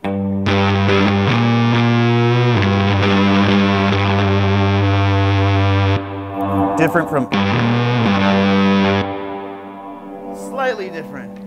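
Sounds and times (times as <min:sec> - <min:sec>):
fuzz pedal distorted electric guitar modelled on the blue Fuzz Face: 0:00.0 - 0:11.4
speech: 0:06.8 - 0:07.8, 0:10.7 - 0:11.3.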